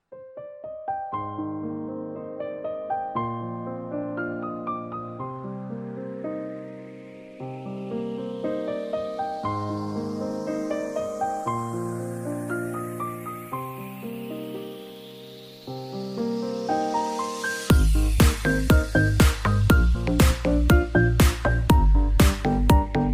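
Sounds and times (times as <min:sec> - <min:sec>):
piano ringtone remix: 0:00.2 - 0:23.1.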